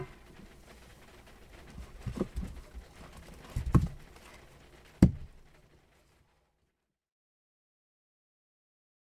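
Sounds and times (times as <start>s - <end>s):
firewood being split: 1.5s - 5.5s.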